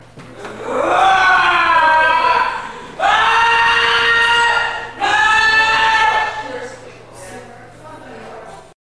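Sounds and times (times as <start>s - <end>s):
EVP screams: 0.5s - 6.6s.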